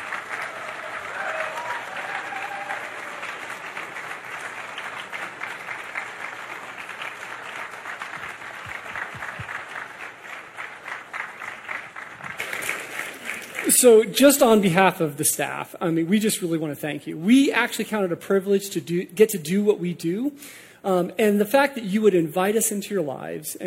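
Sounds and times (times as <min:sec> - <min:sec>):
audience applause: 0:00.0 - 0:14.3
speech: 0:13.8 - 0:23.6.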